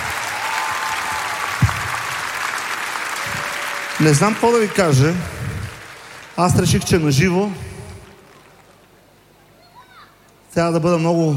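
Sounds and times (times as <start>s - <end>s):
audience applause: 0.0s - 9.1s
speech: 4.0s - 5.4s, 6.4s - 7.7s, 10.6s - 11.3s.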